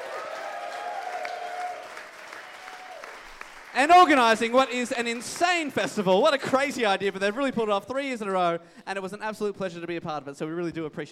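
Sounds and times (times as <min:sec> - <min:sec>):
audience applause: 0:00.0 - 0:05.8
speech: 0:03.8 - 0:11.1.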